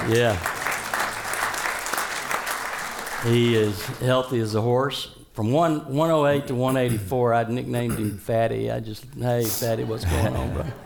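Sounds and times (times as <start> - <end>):
speech: 0.0 - 0.5, 3.2 - 10.8
audience applause: 0.0 - 4.0
laughter: 9.6 - 10.8.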